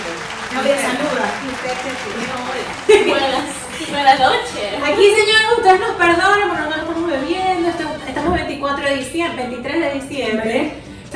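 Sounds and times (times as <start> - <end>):
applause: 0.0 - 3.9
laughter: 0.5 - 4.9
speech: 0.6 - 10.9.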